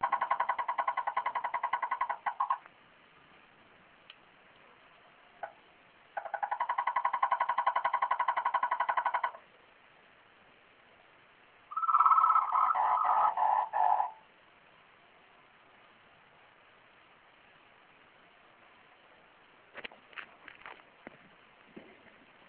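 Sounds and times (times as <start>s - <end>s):
frog: 0.0s - 2.7s, 5.4s - 5.6s, 6.2s - 9.4s, 11.7s - 14.2s.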